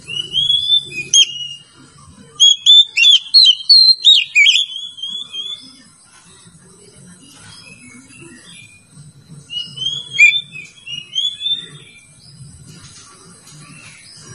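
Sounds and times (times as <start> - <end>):
Oriental magpie-robin singing: 0.0 - 1.8, 2.4 - 5.9, 7.3 - 12.4.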